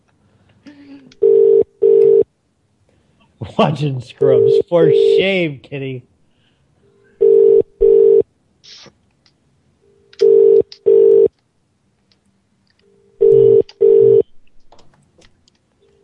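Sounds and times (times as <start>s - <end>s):
telephone ringing: 1.2s - 2.3s, 4.3s - 5.2s, 7.2s - 8.2s, 9.8s - 11.3s, 12.8s - 14.2s
speech: 3.5s - 6.1s.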